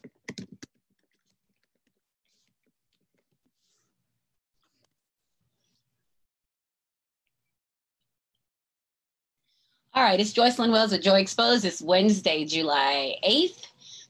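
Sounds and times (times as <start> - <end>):
typing a comment on a computer keyboard: 0.0 - 1.9
speech: 10.0 - 13.7.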